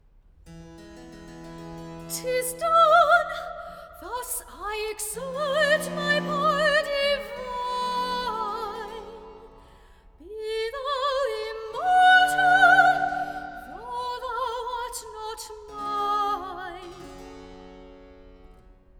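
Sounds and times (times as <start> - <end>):
person singing recitative: 4.1 - 9.3, 10.3 - 16.9.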